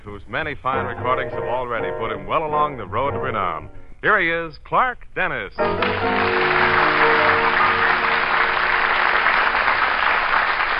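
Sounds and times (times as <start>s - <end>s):
speech: 0.0s - 7.1s
studio audience applauding a guest singer's welcome: 5.6s - 10.7s.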